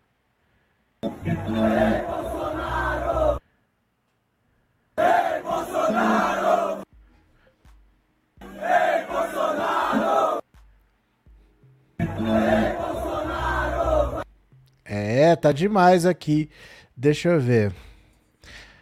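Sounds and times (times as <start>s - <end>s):
speech: 1.0s - 2.3s, 15.4s - 18.6s
fans chanting at a concert: 1.1s - 3.4s, 5.0s - 6.8s, 8.4s - 10.4s, 12.0s - 14.2s.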